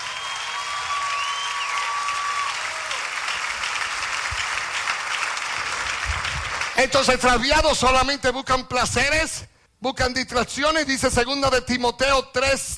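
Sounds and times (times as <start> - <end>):
audience applause: 0.0 - 7.0
speech: 6.8 - 12.7.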